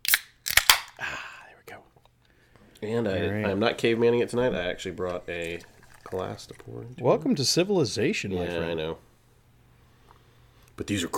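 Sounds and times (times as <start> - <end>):
beer can cracking open: 0.0 - 1.0
speech: 2.8 - 9.1, 10.8 - 11.1.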